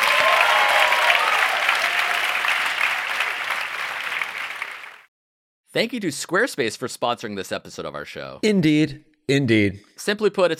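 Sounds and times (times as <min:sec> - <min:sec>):
crowd clapping: 0:00.0 - 0:05.1
speech: 0:05.8 - 0:10.5.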